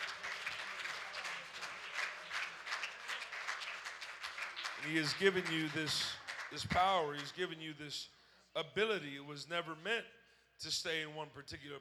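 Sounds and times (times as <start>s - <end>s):
audience clapping hands: 0.0s - 7.6s
speech: 4.8s - 11.7s.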